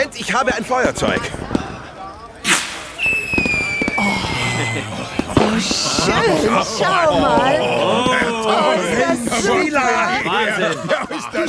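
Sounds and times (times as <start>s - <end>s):
speech: 0.0s - 1.5s, 4.7s - 11.4s
fireworks going off from a balcony: 2.5s - 4.0s
long slowly falling firework whistle: 2.5s - 4.2s.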